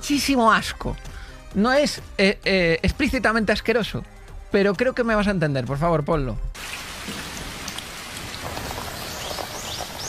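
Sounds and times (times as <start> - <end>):
speech: 0.1 - 6.5
shower water running: 6.6 - 10.0.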